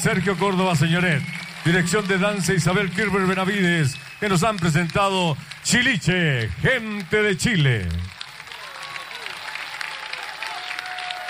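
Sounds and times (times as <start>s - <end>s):
speech: 0.0s - 8.1s
audience applause: 0.0s - 11.2s
faint tonal whistles or voices in the crowd: 0.9s - 1.8s, 3.6s - 4.5s.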